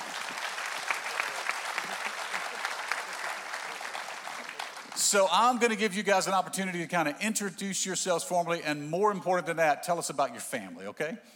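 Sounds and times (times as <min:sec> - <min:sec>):
audience applause welcoming a panel of guests at a morning event: 0:00.0 - 0:05.4
speech: 0:05.1 - 0:11.3.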